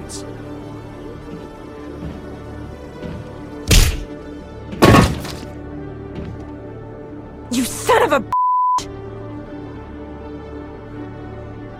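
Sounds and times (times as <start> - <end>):
punch sound effect in video game: 3.7 - 4.1
speech: 8.0 - 8.3.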